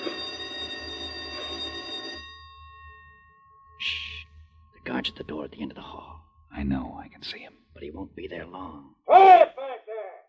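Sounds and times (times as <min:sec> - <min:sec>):
electric bell ringing: 0:00.0 - 0:03.8
low hum: 0:02.9 - 0:08.3
speech: 0:05.0 - 0:09.4.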